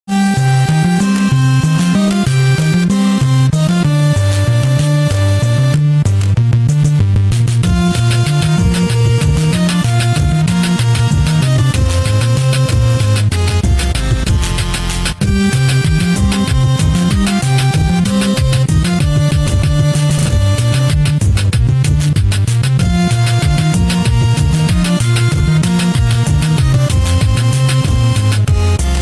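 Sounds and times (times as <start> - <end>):
8-bit chiptune: 0.1 - 29.0.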